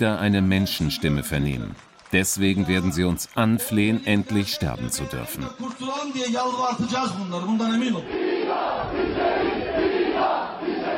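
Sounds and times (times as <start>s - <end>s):
speech: 0.0s - 9.9s
demonstrators in Turkey chanting for the death penalty: 8.0s - 10.9s.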